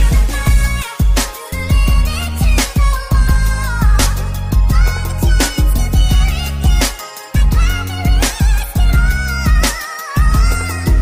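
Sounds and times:
instrumental music: 0.0s - 11.0s.

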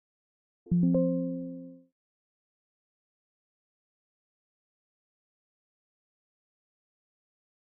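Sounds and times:
Windows 11 background music: 0.7s - 1.8s.

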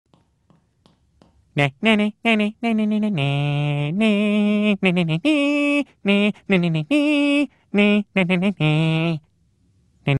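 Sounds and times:
person singing: 1.6s - 9.3s.

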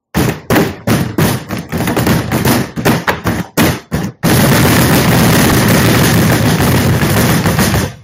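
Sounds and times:
table slamming: 0.0s - 8.0s.

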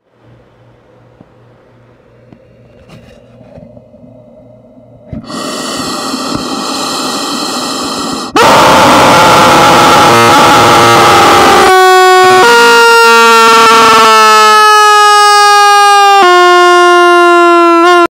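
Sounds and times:
rubber chicken scream: 5.2s - 18.1s.

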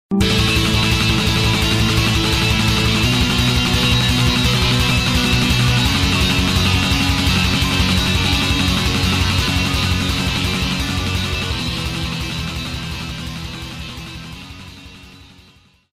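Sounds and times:
music: 0.1s - 15.9s.

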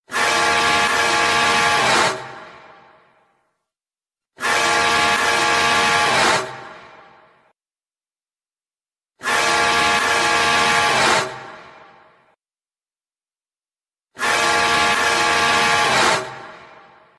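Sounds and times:
creeper truck horn: 0.1s - 2.4s, 4.4s - 6.8s, 9.2s - 11.5s, 14.2s - 16.8s.

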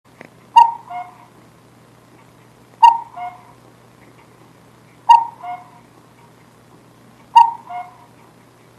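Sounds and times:
foul mouthed cuckoo clock: 0.6s - 1.3s, 2.8s - 3.6s, 5.1s - 5.9s, 7.2s - 8.2s.

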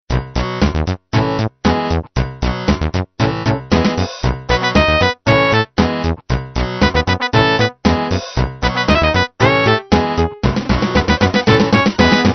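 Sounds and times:
8-bit music: 0.1s - 12.3s.

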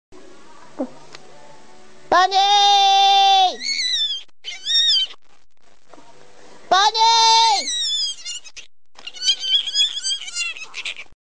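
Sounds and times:
cute bunny screaming: 2.3s - 5.2s, 6.8s - 11.2s.

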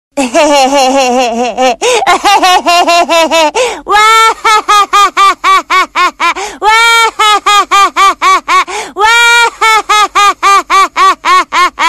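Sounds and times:
person laughing: 0.2s - 11.8s.

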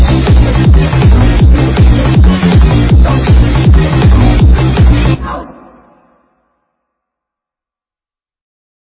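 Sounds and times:
hardbass remix: 0.0s - 6.2s.

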